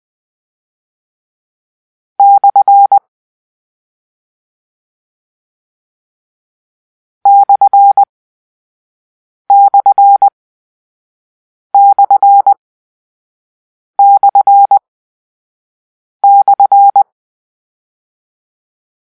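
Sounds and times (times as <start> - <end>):
morse code: 7.3 - 8.1, 9.5 - 10.3, 11.8 - 12.6, 14.0 - 14.8, 16.2 - 17.0.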